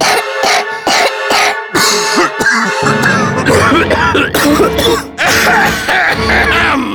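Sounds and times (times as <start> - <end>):
person coughing: 0.0 - 6.9.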